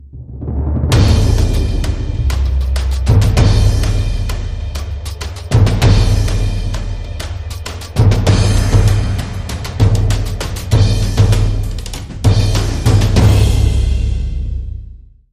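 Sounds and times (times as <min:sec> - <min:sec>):
drums: 0:00.0 - 0:15.0
sound effects: 0:00.8 - 0:11.7.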